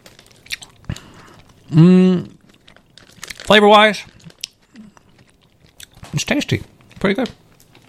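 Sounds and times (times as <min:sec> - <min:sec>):
biting and chewing an Earthy Select Sativa Organic Peach cannabis edible: 0:00.1 - 0:03.4, 0:04.1 - 0:06.1
speech: 0:01.7 - 0:02.4, 0:03.5 - 0:04.1, 0:06.2 - 0:07.4.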